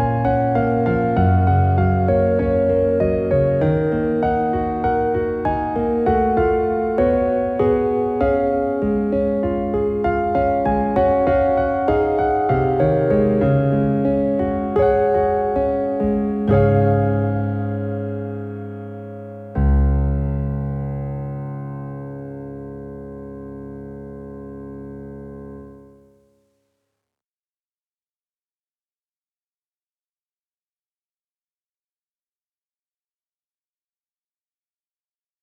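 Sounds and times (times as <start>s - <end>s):
piano arrangement: 0.0s - 26.3s.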